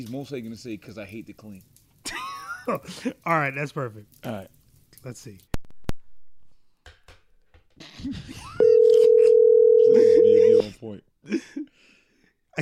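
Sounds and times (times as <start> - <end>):
speech: 0.0 - 5.5, 8.0 - 8.6, 9.9 - 12.0
unanswered phone call ringing tone: 8.6 - 10.6.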